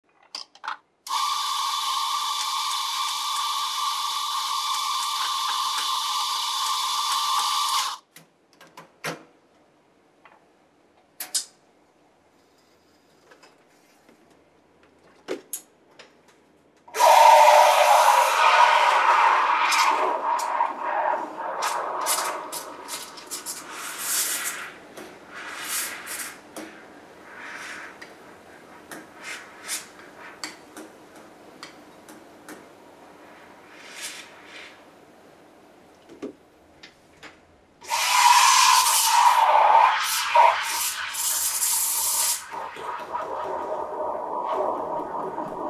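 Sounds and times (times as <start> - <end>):
coffee machine: 1.1 - 8.0, 17.0 - 24.5, 37.8 - 45.6.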